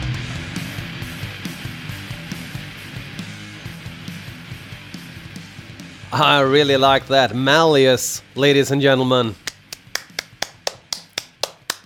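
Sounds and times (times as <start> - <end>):
speech: 6.1 - 9.4
single person clapping: 9.4 - 11.8.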